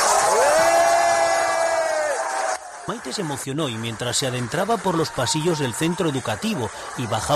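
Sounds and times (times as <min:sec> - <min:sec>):
high sustained shout: 0:00.0 - 0:02.6
students cheering and whooping in school hallways: 0:00.0 - 0:03.4, 0:04.2 - 0:07.3
speech: 0:02.9 - 0:07.3.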